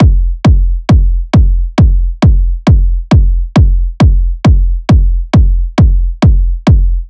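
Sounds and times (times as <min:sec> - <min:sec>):
techno kick drum loop at 135 bpm: 0:00.0 - 0:07.0.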